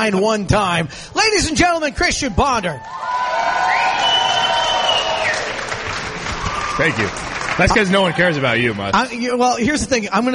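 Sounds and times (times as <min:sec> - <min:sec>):
speech: 0:00.0 - 0:03.1, 0:06.8 - 0:10.3
crowd whooping and shouting: 0:02.2 - 0:08.5
crowd clapping: 0:02.8 - 0:09.2.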